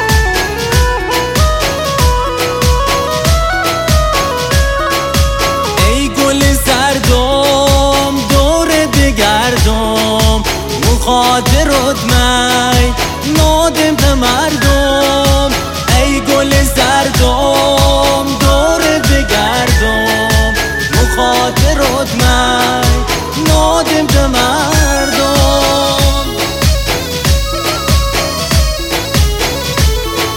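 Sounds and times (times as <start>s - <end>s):
remixed music: 0.0s - 30.3s.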